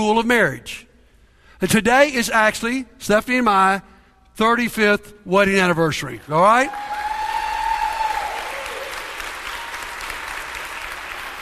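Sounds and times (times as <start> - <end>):
speech: 0.0 - 0.9, 1.6 - 6.9
audience applause: 6.6 - 11.4.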